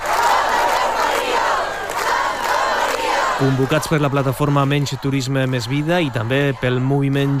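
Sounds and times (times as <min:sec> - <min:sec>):
large crowd of protesters chanting and shouting in the street: 0:00.0 - 0:07.3
speech: 0:03.4 - 0:07.3.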